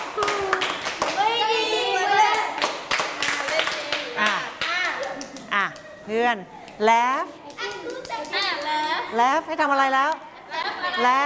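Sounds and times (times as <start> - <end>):
children clapping their hands: 0.0 - 5.9, 7.5 - 9.0
high-pitched children's voices chattering and calling out: 0.2 - 2.6, 3.4 - 9.2, 10.3 - 11.2
speech: 6.1 - 10.2, 11.0 - 11.2.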